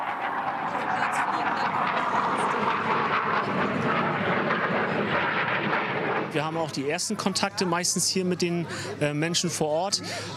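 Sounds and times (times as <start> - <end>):
Tornado fighter jets from Jagel flying overhead: 0.0 - 9.0
speech: 6.3 - 10.3.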